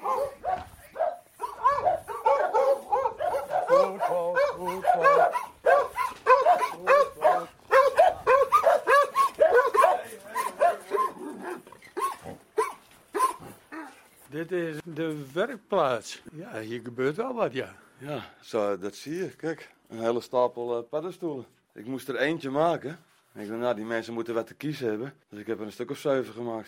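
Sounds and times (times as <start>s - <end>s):
dogs barking at a workshop: 0.0s - 14.0s
speech: 15.3s - 26.6s.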